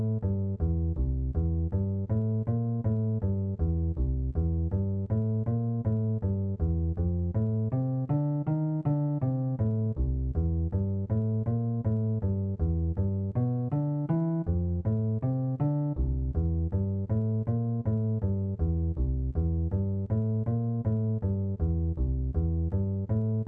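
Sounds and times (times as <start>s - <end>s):
bass guitar: 0.0s - 23.4s.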